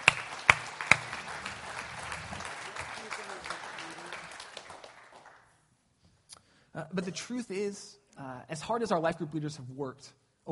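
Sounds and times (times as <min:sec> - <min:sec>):
crowd applause: 0:00.0 - 0:05.5
speech: 0:06.8 - 0:10.4.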